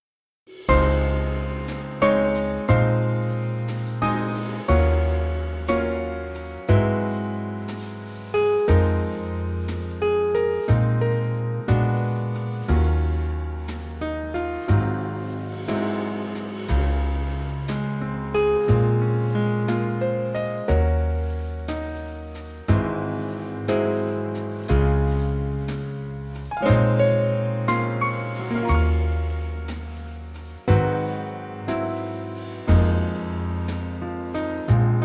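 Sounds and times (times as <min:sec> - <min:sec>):
musical trio: 0:00.5 - 0:35.0.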